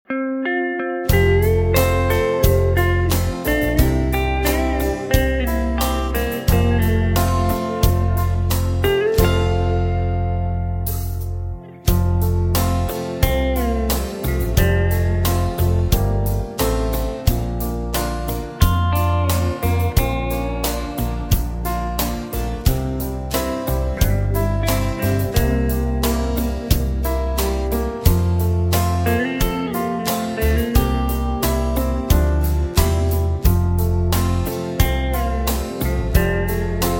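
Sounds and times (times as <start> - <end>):
backing track in F: 0.4 - 36.9.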